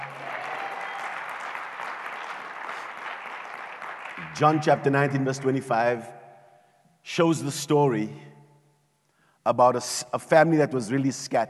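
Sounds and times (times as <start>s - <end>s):
audience clapping hands: 0.0s - 5.3s
speech: 4.3s - 6.2s, 7.1s - 8.3s, 9.5s - 11.4s.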